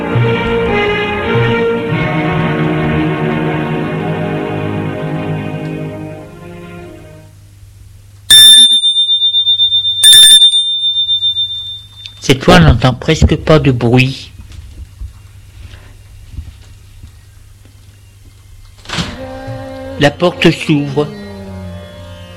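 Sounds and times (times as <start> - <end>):
music: 0.0 - 7.4, 19.1 - 22.3
electric doorbell ringing at apartment door: 8.3 - 12.2
speech: 12.3 - 14.2, 20.0 - 21.2.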